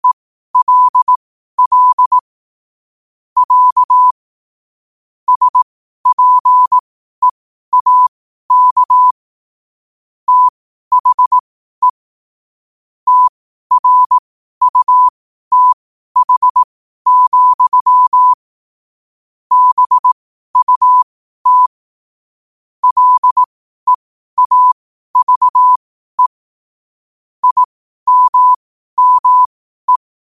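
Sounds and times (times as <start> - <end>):
morse code at 5 wpm: 0.0 - 2.2, 3.4 - 4.2, 5.3 - 6.8, 7.7 - 9.2, 10.3 - 12.0, 13.1 - 18.4, 19.5 - 21.8, 22.8 - 26.3, 27.4 - 30.0.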